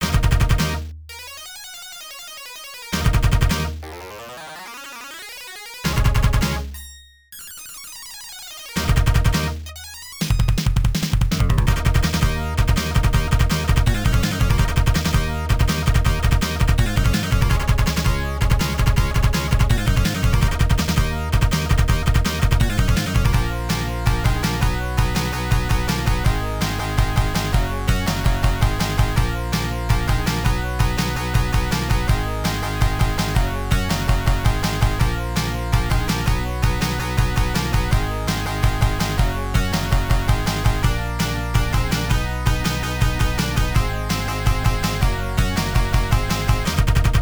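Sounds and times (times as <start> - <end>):
jungle combat music: 0.0 - 6.8, 7.8 - 47.2.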